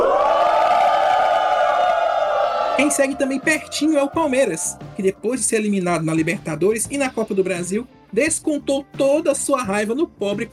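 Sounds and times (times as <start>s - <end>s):
crowd booing at a goalless football match between Bahia and Botafogo at Fonte Nova: 0.0s - 5.0s
speech: 2.8s - 10.5s.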